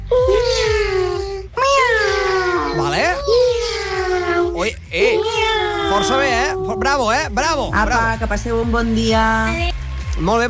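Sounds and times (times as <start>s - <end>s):
children imitating kitten meows: 0.0s - 7.4s
speech: 6.0s - 10.4s.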